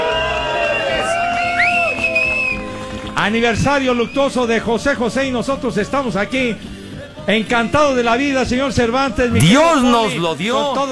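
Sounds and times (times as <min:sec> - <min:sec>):
crowd ovation and cheering: 0:00.0 - 0:03.1
speech: 0:03.2 - 0:10.9.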